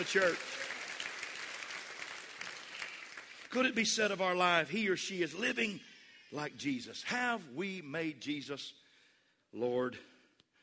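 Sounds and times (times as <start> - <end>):
speech: 0.0 - 0.6, 3.5 - 8.8, 9.5 - 10.1
audience clapping: 0.0 - 4.0.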